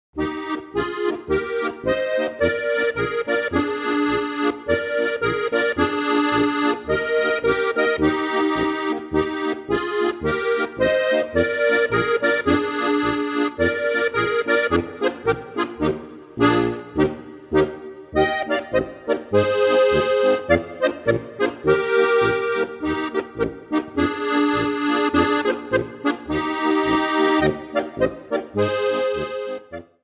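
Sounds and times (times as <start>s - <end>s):
polka music: 0.2s - 30.0s.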